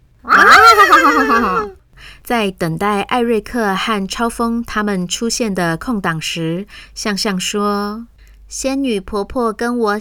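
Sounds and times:
voice imitating horse whinny: 0.3s - 1.8s
speech: 1.0s - 9.9s.

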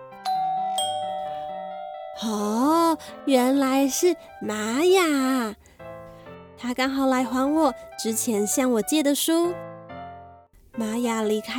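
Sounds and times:
doorbell ringing: 0.2s - 4.0s
speech: 2.2s - 5.6s, 6.6s - 9.7s, 10.8s - 11.5s.

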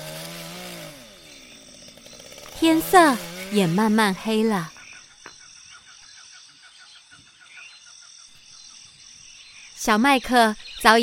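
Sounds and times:
small chainsaw cutting wood: 0.0s - 4.7s
speech: 2.6s - 4.8s, 9.8s - 11.0s.

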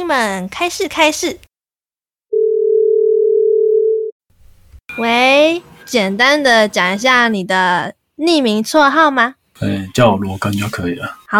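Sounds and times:
speech: 0.1s - 1.5s, 5.0s - 11.3s
telephone call-in line tone: 2.3s - 4.1s.

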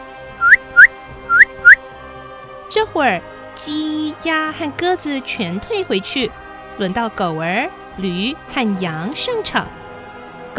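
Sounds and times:
sharp high whistle blasts: 0.4s - 1.8s
speech: 2.7s - 9.8s.

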